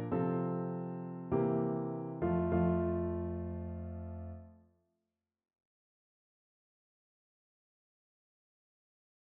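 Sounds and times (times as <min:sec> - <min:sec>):
piano piece: 0:00.0 - 0:04.6.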